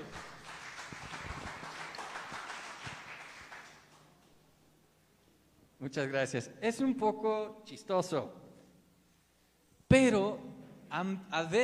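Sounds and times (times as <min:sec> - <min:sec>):
audience applause: 0:00.0 - 0:04.1
speech: 0:05.8 - 0:08.4, 0:09.9 - 0:10.4, 0:11.0 - 0:11.6.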